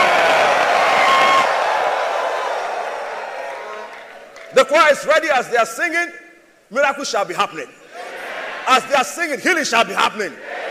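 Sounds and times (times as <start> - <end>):
audience screaming: 0.0 - 4.1
speech: 4.7 - 7.8, 8.7 - 10.5.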